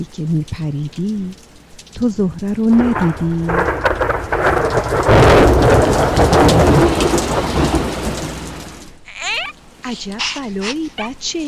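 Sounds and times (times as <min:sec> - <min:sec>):
speech: 0:00.0 - 0:03.8, 0:04.8 - 0:07.9, 0:09.9 - 0:11.4
heavy steady rain: 0:00.0 - 0:11.4
deep thunder rumbling: 0:02.5 - 0:09.0.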